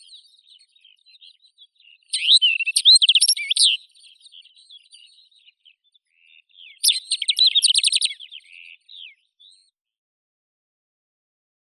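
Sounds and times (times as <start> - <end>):
Calandrella brachydactyla greater short-toed lark singing: 2.1 - 5.1, 6.6 - 9.2.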